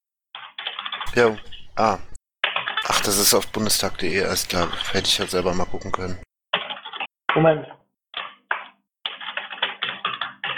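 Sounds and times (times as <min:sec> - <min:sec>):
typing on a computer keyboard entering a link into a shared online pad: 0:00.4 - 0:07.1, 0:08.2 - 0:10.5
voice-like tone: 0:01.1 - 0:02.2, 0:02.8 - 0:06.2
speech: 0:01.2 - 0:02.1, 0:03.1 - 0:06.2, 0:07.4 - 0:07.8.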